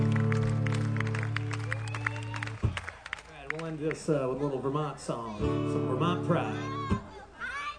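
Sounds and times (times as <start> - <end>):
audience applause: 0.0 - 4.7
speech: 3.7 - 7.0.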